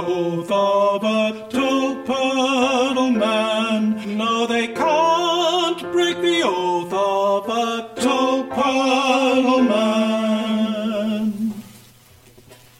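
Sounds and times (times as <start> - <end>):
tenor singing: 0.0 - 11.8.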